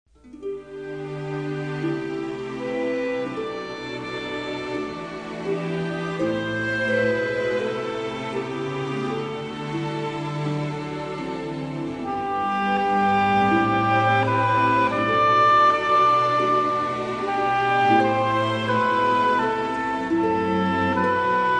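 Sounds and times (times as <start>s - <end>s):
orchestral strings: 0.1s - 21.5s.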